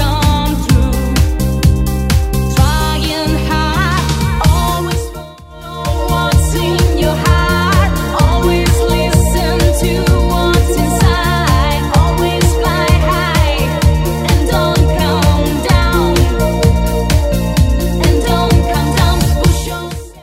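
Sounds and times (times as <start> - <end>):
DJ-friendly electronic dance music: 0.0 - 20.2.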